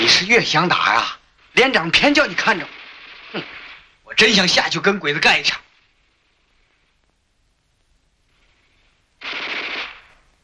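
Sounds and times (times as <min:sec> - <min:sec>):
speech: 0:00.1 - 0:05.6
Japanese Type 11 light machine gun firing in wartime radio drama: 0:02.0 - 0:03.8, 0:09.2 - 0:10.3.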